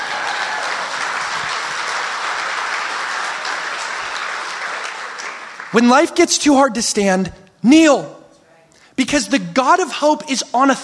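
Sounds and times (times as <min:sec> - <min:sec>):
large crowd clapping: 0:00.0 - 0:06.4
speech: 0:05.7 - 0:08.2, 0:09.0 - 0:10.8.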